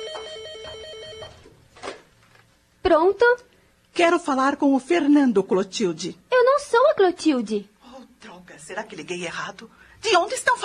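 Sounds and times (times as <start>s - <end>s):
household telephone ringing: 0.0s - 1.5s
speech: 2.9s - 10.6s.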